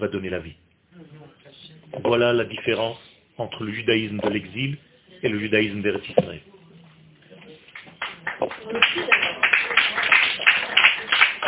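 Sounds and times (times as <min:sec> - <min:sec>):
speech: 0:00.0 - 0:01.2, 0:01.9 - 0:06.5
audience applause: 0:08.0 - 0:11.4.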